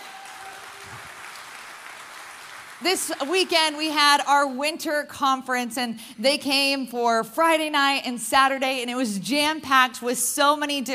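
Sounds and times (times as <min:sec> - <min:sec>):
crowd applause: 0:00.0 - 0:03.8
speech: 0:02.8 - 0:10.9.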